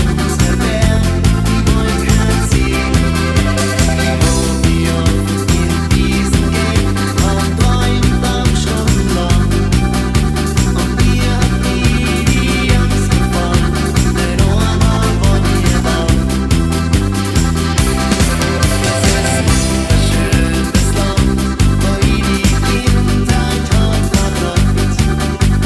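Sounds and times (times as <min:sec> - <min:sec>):
karaoke backing track without harmonica: 0:00.0 - 0:25.6
choir singing: 0:01.6 - 0:07.6, 0:18.0 - 0:22.7.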